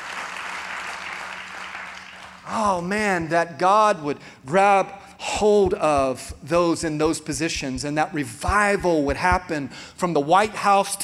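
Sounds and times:
church congregation clapping: 0:00.0 - 0:02.6
speech: 0:02.5 - 0:11.0.

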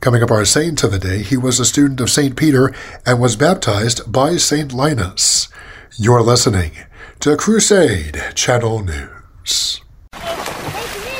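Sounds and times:
speech: 0:00.0 - 0:10.4
water splashing in a swimming pool: 0:10.1 - 0:11.1.

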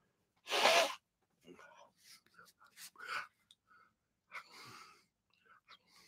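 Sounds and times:
nose blowing into tissue: 0:00.4 - 0:01.0.

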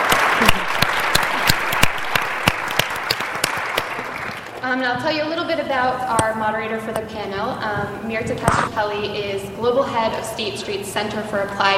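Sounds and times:
audience applause: 0:00.0 - 0:04.6
speech: 0:04.7 - 0:11.7.

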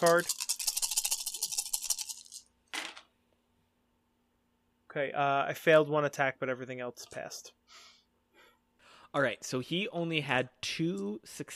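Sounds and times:
speech: 0:00.0 - 0:00.5, 0:05.0 - 0:07.6, 0:09.1 - 0:11.5
dice rolled in a Cthulhu Wushu tabletop game: 0:00.0 - 0:03.1.

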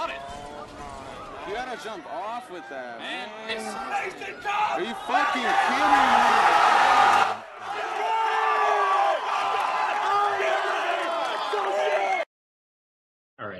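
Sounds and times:
crowd cheering and yelling: 0:00.0 - 0:12.3
speech: 0:01.5 - 0:07.2.

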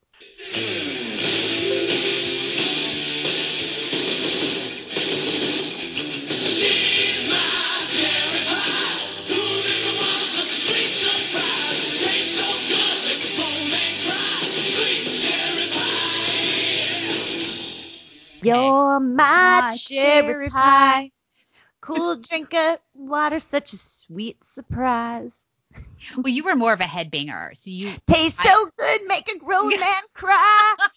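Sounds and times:
1980s hair band rock song: 0:00.2 - 0:18.6
speech: 0:18.5 - 0:21.2, 0:21.8 - 0:25.4, 0:26.0 - 0:30.9
laughter: 0:29.5 - 0:30.9.

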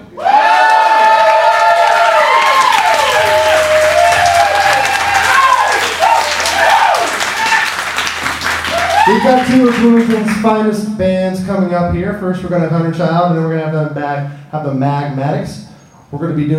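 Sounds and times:
live audience at the Blockhouse in Bloomington cheering and shouting: 0:00.0 - 0:10.3
speech: 0:09.1 - 0:16.5.

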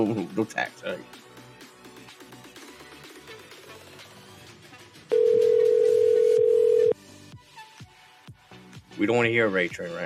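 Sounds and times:
speech: 0:00.0 - 0:01.3, 0:09.0 - 0:10.0
telephone dial tone: 0:05.1 - 0:07.0.

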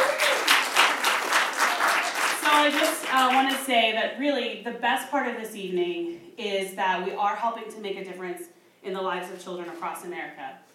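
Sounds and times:
audience applause: 0:00.0 - 0:03.6
speech: 0:02.5 - 0:10.7.

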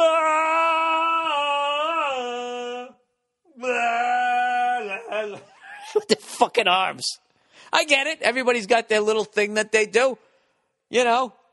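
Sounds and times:
voice imitating a chant: 0:00.0 - 0:05.6
speech: 0:06.0 - 0:10.3, 0:10.9 - 0:11.4.

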